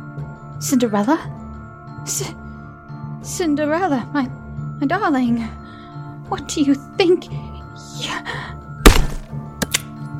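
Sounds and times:
speech: 0:00.6 - 0:01.4, 0:02.0 - 0:02.5, 0:03.2 - 0:05.6, 0:06.3 - 0:08.6
axe chopping down into a body: 0:08.8 - 0:09.8.

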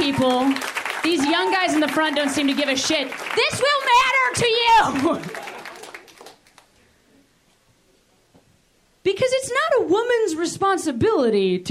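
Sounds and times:
crowd clapping: 0:00.0 - 0:06.8
speech: 0:00.1 - 0:05.4, 0:09.0 - 0:11.6.

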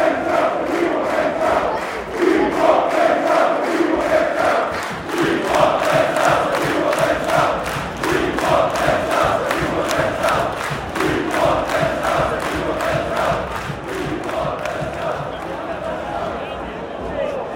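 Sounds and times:
football crowd in the away end: 0:00.0 - 0:17.5.

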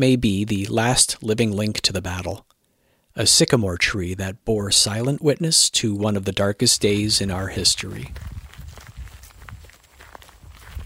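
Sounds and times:
speech: 0:00.0 - 0:02.5, 0:03.2 - 0:08.4
footsteps walking down a gravel road at the Antietam battlefield: 0:06.8 - 0:10.8.

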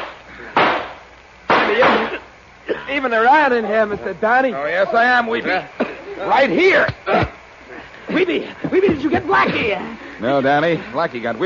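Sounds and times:
gunshots in a radio drama shootout: 0:00.0 - 0:02.1
speech: 0:02.9 - 0:07.3, 0:08.2 - 0:11.4.

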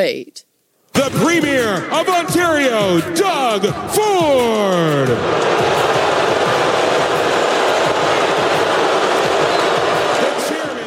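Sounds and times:
speech: 0:00.0 - 0:05.9
crowd booing at a parade: 0:04.0 - 0:10.8.

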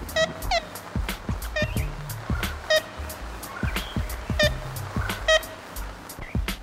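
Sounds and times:
steady rumbling hiss: 0:00.0 - 0:06.6
ivory-billed woodpecker calls, archive recording: 0:00.1 - 0:06.6.

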